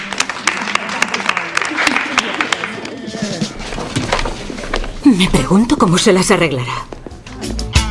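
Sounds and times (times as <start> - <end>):
audience clapping: 0.0 - 5.0
lively crowd chatter: 0.0 - 7.8
speech: 5.1 - 6.9.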